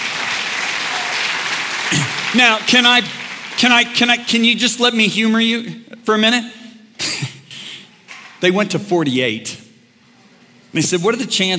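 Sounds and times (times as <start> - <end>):
audience applause: 0.0 - 4.2
speech: 1.9 - 6.6, 8.4 - 9.6, 10.8 - 11.5.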